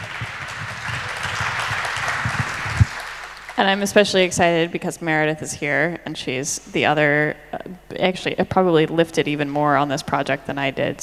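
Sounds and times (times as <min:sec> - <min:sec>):
audience applause: 0:00.0 - 0:03.8
speech: 0:03.6 - 0:11.0.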